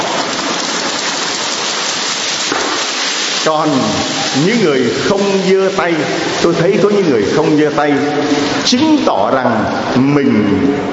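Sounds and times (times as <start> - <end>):
audience applause: 0.0 - 4.4
speech: 3.4 - 10.9.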